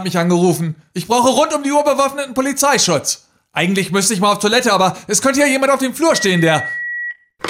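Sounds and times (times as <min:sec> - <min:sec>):
speech: 0:00.0 - 0:06.8
answering machine beep tone: 0:06.2 - 0:07.2.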